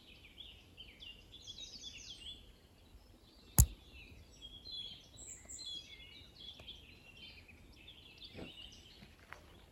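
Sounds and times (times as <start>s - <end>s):
common nightingale Luscinia megarhynchos singing: 0.1s - 8.2s.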